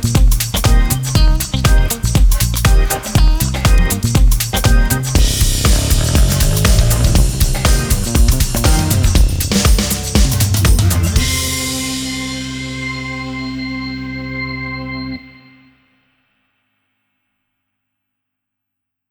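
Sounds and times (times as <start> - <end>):
funk music bed: 0.0 - 15.2.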